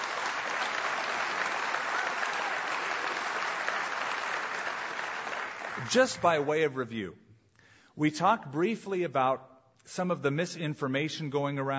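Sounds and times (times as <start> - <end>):
audience applause: 0.0 - 6.5
speech: 5.8 - 7.2, 8.0 - 11.7.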